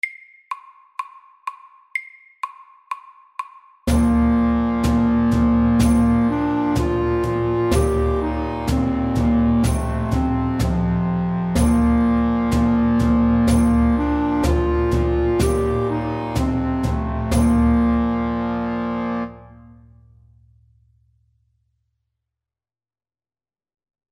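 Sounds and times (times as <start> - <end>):
fast English melody: 3.9 - 19.8.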